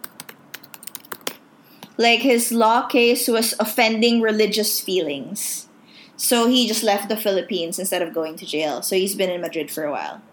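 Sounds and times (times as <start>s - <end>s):
typing on a computer keyboard during a Google search: 0.0s - 1.4s
speech: 2.0s - 10.3s.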